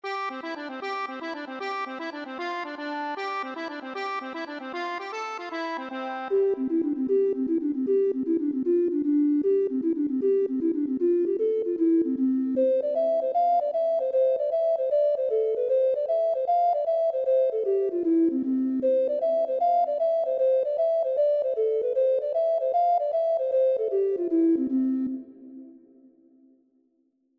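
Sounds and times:
accordion: 0.0 - 25.6.

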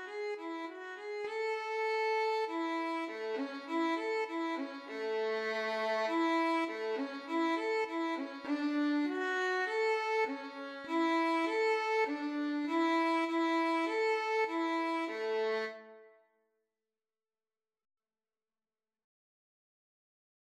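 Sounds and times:
violin playing a minuet: 0.0 - 16.1.

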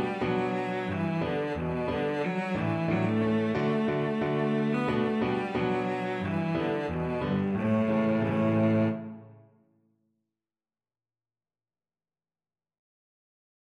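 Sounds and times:
cello: 0.0 - 9.5.

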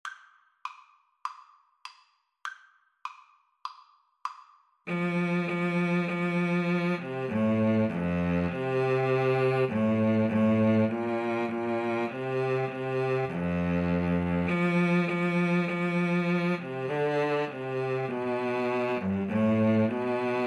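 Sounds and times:
violin and cello duet playing a Christmas carol: 4.9 - 20.4.

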